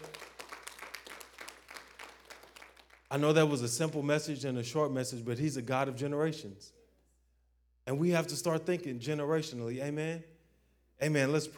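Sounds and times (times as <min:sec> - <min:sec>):
audience clapping hands in praise: 0:00.0 - 0:04.1
speech: 0:03.1 - 0:06.8, 0:07.9 - 0:10.3, 0:11.0 - 0:11.5.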